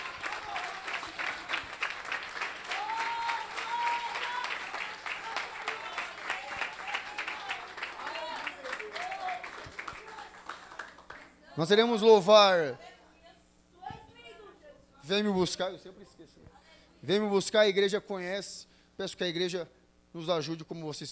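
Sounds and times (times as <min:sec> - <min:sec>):
audience applauding: 0:00.0 - 0:11.3
speech: 0:11.6 - 0:12.9, 0:15.1 - 0:21.0.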